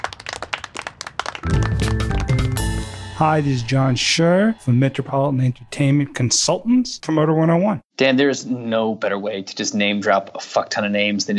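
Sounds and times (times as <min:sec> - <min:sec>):
light polite golf clap: 0:00.0 - 0:04.0
steady musical bed with sustained tones: 0:01.4 - 0:05.5
speech: 0:03.2 - 0:11.3.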